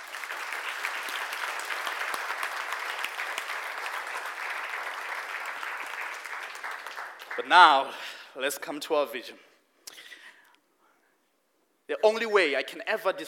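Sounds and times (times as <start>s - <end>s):
audience applauding: 0.0s - 7.8s
speech: 7.4s - 9.5s, 12.0s - 13.2s.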